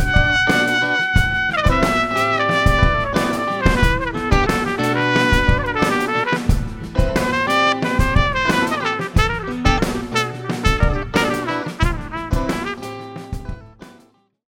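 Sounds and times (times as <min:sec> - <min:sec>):
smooth trumpet grooves: 0:00.0 - 0:13.5.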